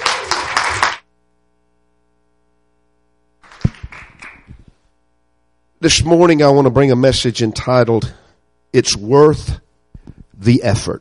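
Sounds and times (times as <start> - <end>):
audience clapping hands: 0.0 - 1.1, 3.4 - 4.8
speech: 5.8 - 9.6, 10.4 - 10.9.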